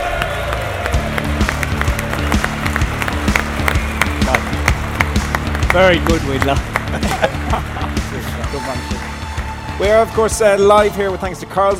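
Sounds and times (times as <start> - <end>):
crowd applauding Stuart Pearce at a live football event: 0.0 - 10.4
speech: 5.8 - 7.8, 8.5 - 9.1, 9.8 - 11.7
laughter: 6.5 - 8.8.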